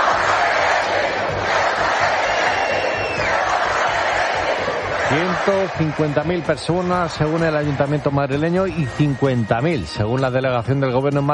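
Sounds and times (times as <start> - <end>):
crowd of protesters chanting in street in Madrid: 0.0 - 8.1
speech: 5.1 - 11.3.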